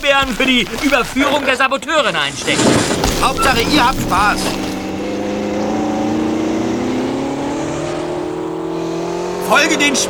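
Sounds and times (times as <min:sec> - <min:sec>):
speech: 0:00.2 - 0:04.6, 0:09.5 - 0:10.0
vehicle engine accelerating through snow during a chase: 0:04.9 - 0:10.0.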